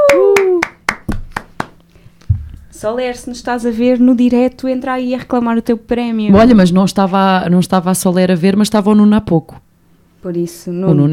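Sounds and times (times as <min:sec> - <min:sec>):
voice letting out a gliding whoop: 0:00.0 - 0:00.8
hand claps: 0:00.0 - 0:01.9
dull low thump: 0:02.3 - 0:02.7
speech: 0:02.8 - 0:09.6, 0:10.2 - 0:11.1.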